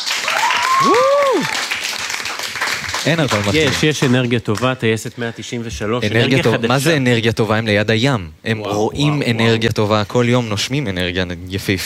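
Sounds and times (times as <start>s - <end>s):
crowd clapping at the Palmachim air base celebration for squadron 193: 0.0s - 4.8s
person cheering: 0.2s - 1.6s
speech: 0.8s - 1.6s, 3.0s - 11.8s.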